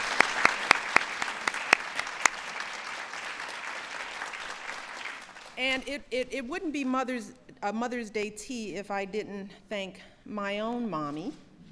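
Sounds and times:
round of applause: 0:00.0 - 0:05.6
speech: 0:05.6 - 0:11.4.

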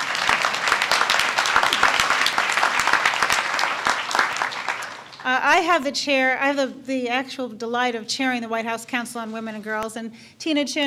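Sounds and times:
audience applause: 0:00.0 - 0:05.3
speech: 0:05.2 - 0:10.8.

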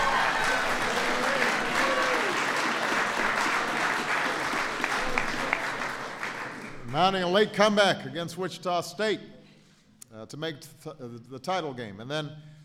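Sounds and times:
round of applause: 0:00.0 - 0:07.1
speech: 0:07.0 - 0:09.3, 0:10.2 - 0:12.5.

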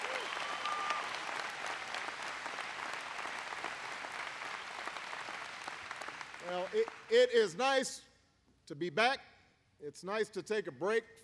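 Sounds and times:
crowd applauding: 0:00.0 - 0:07.3
speech: 0:06.5 - 0:08.1, 0:08.7 - 0:11.2.

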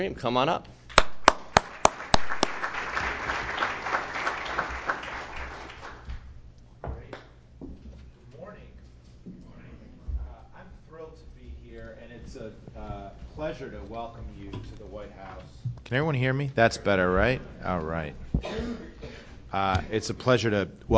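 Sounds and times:
speech: 0:00.0 - 0:00.8, 0:13.6 - 0:18.8, 0:19.5 - 0:20.9
audience applause at a White House panel event: 0:00.9 - 0:06.1.

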